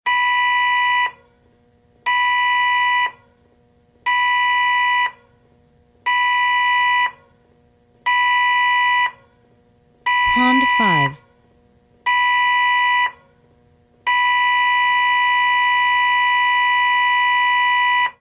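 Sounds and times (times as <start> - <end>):
cruise ship alarm: 0.1 - 1.1, 2.1 - 3.2, 4.1 - 5.2, 6.1 - 7.2, 8.1 - 9.2, 10.1 - 11.2, 12.1 - 13.2, 14.1 - 18.1.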